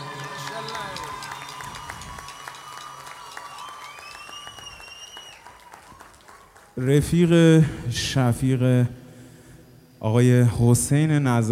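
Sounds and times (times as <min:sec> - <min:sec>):
audience applause at a live concert: 0:00.0 - 0:07.0
speech: 0:06.8 - 0:09.0, 0:10.0 - 0:11.5.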